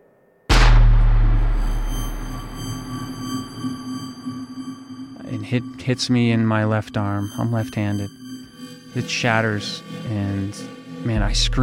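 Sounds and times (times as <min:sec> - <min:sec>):
gunshot with long rumbling echo: 0:00.5 - 0:03.5
steady hum: 0:00.5 - 0:11.6
speech: 0:05.5 - 0:08.2, 0:08.9 - 0:11.6.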